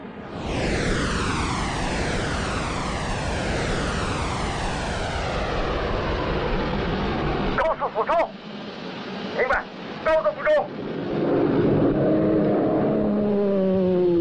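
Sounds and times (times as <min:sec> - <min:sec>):
aircraft engine roar during steep climb: 0:00.0 - 0:14.2.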